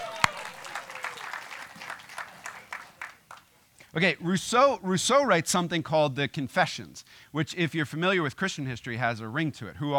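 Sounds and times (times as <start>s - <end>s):
small audience clapping: 0.0s - 3.6s
speech: 3.9s - 9.9s.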